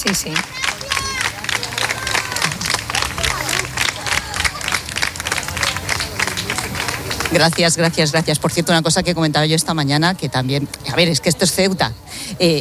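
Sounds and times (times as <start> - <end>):
speech: 0.0 - 0.6, 7.3 - 12.5
crowd applauding: 0.0 - 8.3.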